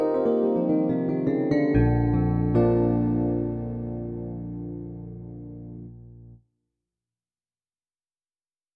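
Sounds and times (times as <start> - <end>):
digital electric piano: 0.0 - 6.4.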